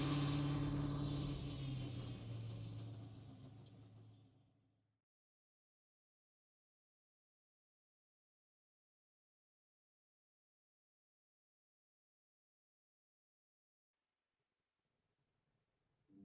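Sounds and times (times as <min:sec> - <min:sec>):
race car: 0:00.0 - 0:04.6.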